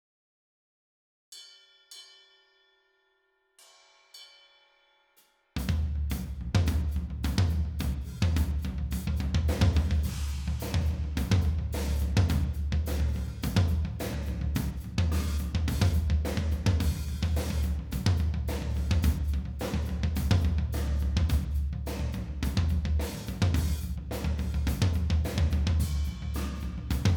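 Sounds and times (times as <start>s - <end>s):
tom drums: 5.6s - 27.1s.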